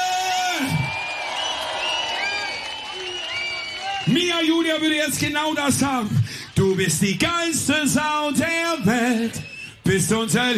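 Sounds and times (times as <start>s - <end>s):
audience applause: 0.6s - 7.6s
speech: 4.1s - 10.5s.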